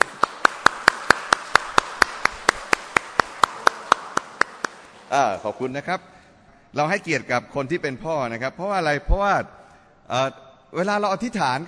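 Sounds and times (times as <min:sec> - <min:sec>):
audience applauding: 0:00.0 - 0:05.1
speech: 0:05.1 - 0:11.6.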